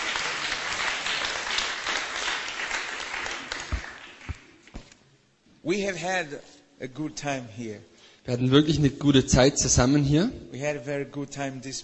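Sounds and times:
church congregation clapping in praise of Jesus: 0.0s - 4.9s
speech: 5.6s - 11.8s.

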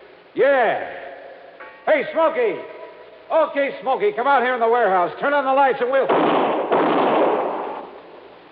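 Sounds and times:
speech: 0.4s - 1.0s, 1.9s - 6.4s
gunshot in a warehouse: 6.1s - 8.0s.

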